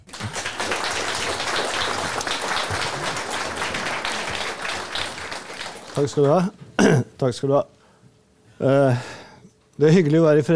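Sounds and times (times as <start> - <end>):
crowd applauding warmly: 0.0 - 6.6
speech: 6.0 - 7.8, 8.6 - 9.2, 9.8 - 10.5.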